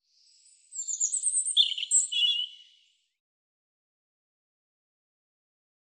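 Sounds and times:
European robin singing: 0.1 - 3.0.

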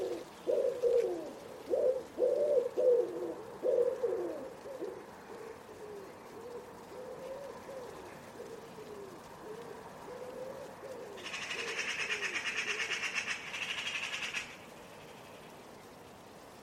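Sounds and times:
Common Wood Pigeon cooing: 0.0 - 14.4.

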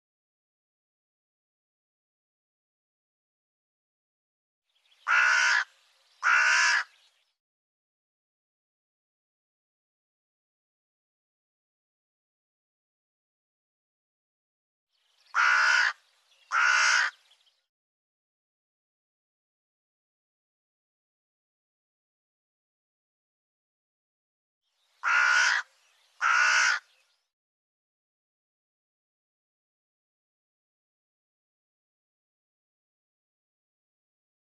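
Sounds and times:
bird cawing: 5.0 - 7.0, 15.3 - 17.3, 25.0 - 27.0.

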